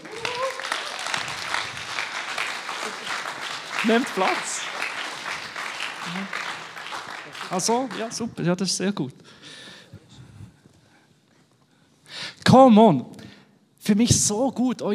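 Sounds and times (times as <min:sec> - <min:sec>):
audience applause: 0:00.0 - 0:08.3
speech: 0:03.8 - 0:04.7, 0:06.1 - 0:06.4, 0:07.5 - 0:09.4, 0:12.6 - 0:13.1, 0:13.9 - 0:14.9.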